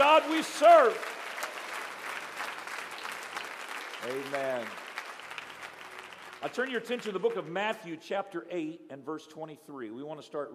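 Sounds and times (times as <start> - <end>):
audience hand clapping: 0.0 - 7.8
speech: 0.3 - 1.2, 4.0 - 4.8, 6.4 - 10.5.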